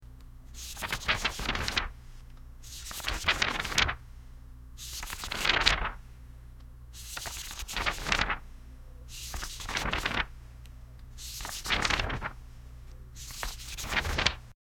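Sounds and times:
page turning in a library: 0:00.6 - 0:02.0, 0:02.6 - 0:04.0, 0:04.8 - 0:06.0, 0:07.0 - 0:08.4, 0:09.1 - 0:10.3, 0:11.2 - 0:12.4, 0:13.2 - 0:14.5.

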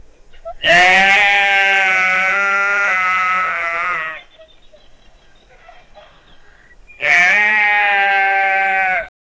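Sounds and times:
sheep bleating: 0:00.6 - 0:04.3, 0:07.0 - 0:09.1.

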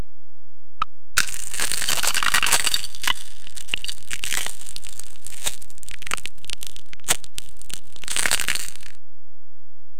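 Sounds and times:
granola crunching: 0:01.2 - 0:09.0.

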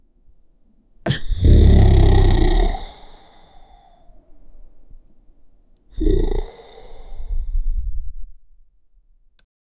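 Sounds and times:
dinosaur growl with gentle release: 0:01.1 - 0:03.4, 0:06.0 - 0:07.3.

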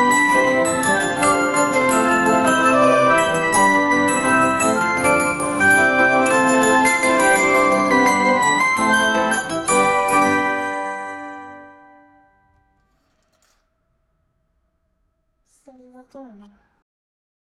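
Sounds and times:
Christmas dance music: 0:00.0 - 0:12.2.

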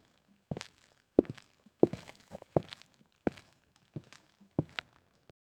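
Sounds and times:
footsteps with boots: 0:00.5 - 0:04.9.

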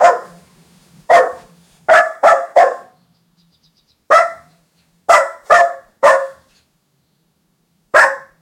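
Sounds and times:
animal barking: 0:00.0 - 0:00.5, 0:01.1 - 0:03.0, 0:04.1 - 0:06.5, 0:08.0 - 0:08.4.

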